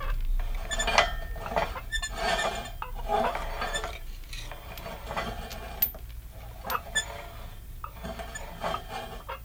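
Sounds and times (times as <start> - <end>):
metal scrape creak: 0.0 - 9.4.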